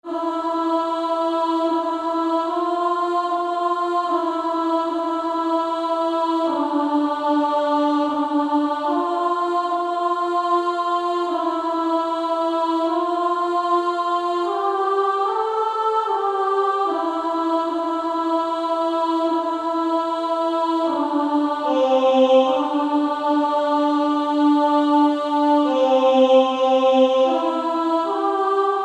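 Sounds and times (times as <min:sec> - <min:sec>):
female choir singing: 0:00.0 - 0:28.8.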